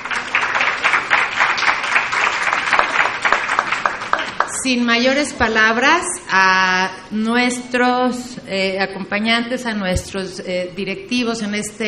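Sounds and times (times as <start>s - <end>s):
audience applause: 0.0s - 4.6s
speech: 4.6s - 11.8s.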